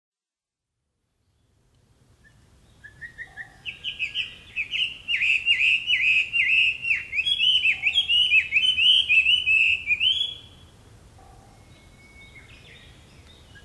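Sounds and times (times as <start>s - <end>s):
Chinese hwamei whistled song in Hino Japan: 2.8s - 10.5s.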